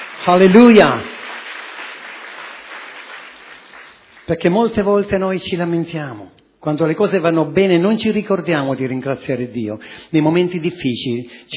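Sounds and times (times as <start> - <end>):
audience applause: 0.0 - 4.3
speech: 0.2 - 1.1, 4.3 - 11.5.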